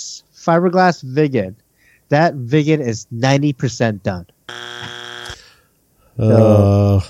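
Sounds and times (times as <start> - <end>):
speech: 0.0 - 4.6, 6.2 - 7.0
game show buzzer: 4.5 - 5.5.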